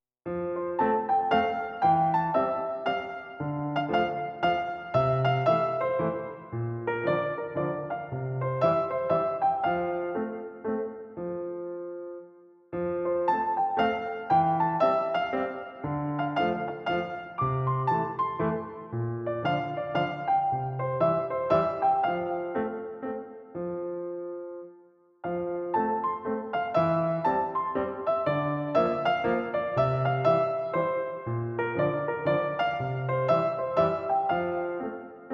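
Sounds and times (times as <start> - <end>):
piano music: 0.2 - 35.3.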